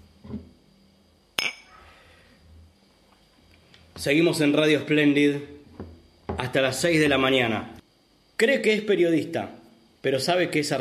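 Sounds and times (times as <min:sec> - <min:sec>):
glasses clinking in a toast: 0:01.4 - 0:01.8
speech: 0:04.0 - 0:05.6, 0:06.5 - 0:07.8, 0:08.4 - 0:10.7.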